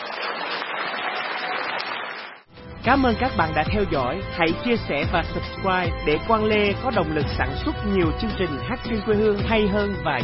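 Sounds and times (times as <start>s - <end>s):
audience applause for a male singer at a Vietnamese music show: 0.0s - 2.5s
speech: 2.8s - 10.2s.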